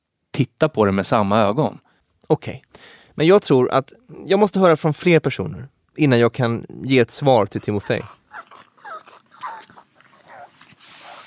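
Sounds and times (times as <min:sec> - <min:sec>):
speech: 0:00.4 - 0:08.7
pug breathy snuffling: 0:07.4 - 0:11.2
pug snorting and grunting with pig-like noises: 0:07.5 - 0:11.2.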